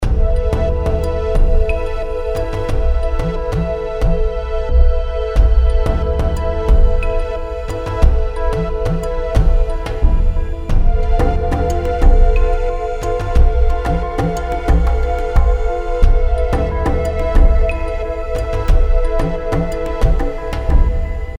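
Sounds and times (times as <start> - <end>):
mystic lounge music in C: 0.0 - 21.3.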